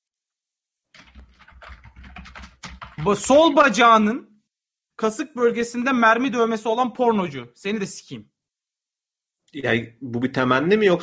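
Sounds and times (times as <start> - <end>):
rapid typing on a computer keyboard: 0.9 - 3.6
speech: 3.0 - 4.3, 5.0 - 8.3, 9.5 - 11.0.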